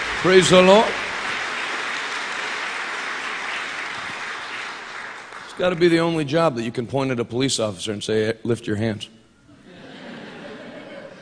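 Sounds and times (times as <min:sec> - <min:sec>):
audience hand clapping: 0:00.0 - 0:06.4
speech: 0:00.2 - 0:01.0, 0:05.6 - 0:09.2
laughter: 0:09.6 - 0:11.2.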